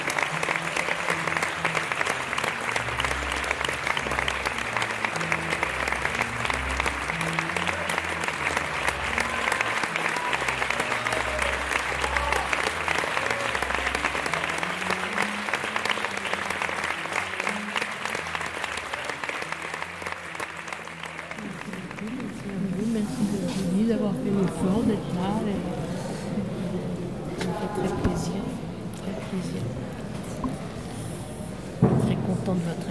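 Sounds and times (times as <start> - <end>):
show audience applauding: 0.0 - 25.2
low murmurs: 0.0 - 32.8.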